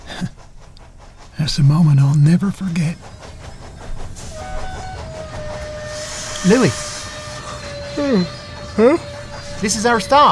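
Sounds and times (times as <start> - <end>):
moving freight train rumble and clatter: 0.0 - 10.3
speech: 1.4 - 3.2, 6.4 - 6.9, 8.0 - 9.0, 9.6 - 10.3
thin sustained high tone: 5.0 - 10.0.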